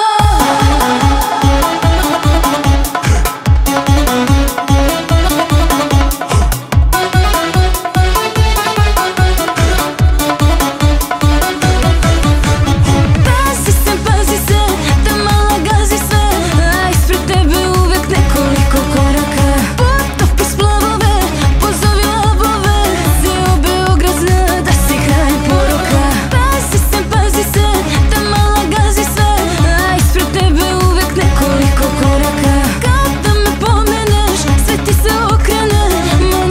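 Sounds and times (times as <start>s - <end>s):
turbo folk music: 0.2s - 36.4s.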